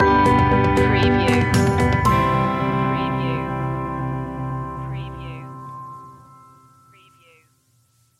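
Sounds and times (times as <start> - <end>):
music stinger: 0.0 - 7.0.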